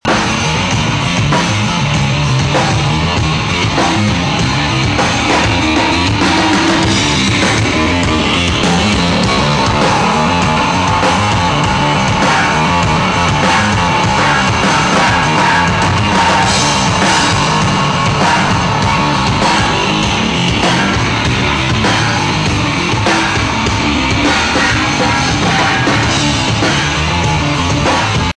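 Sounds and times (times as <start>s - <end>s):
drum and bass music: 0.0s - 28.3s.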